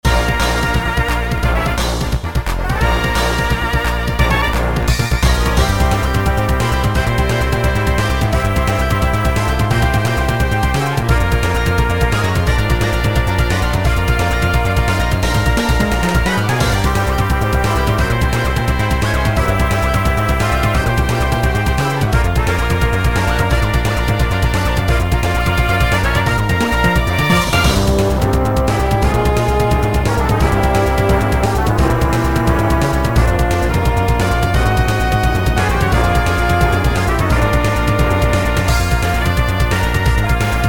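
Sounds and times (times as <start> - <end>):
battle music: 0.0 - 40.6.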